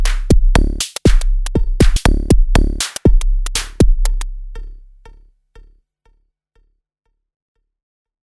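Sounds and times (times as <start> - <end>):
metal drum machine hit: 0.0 - 5.0.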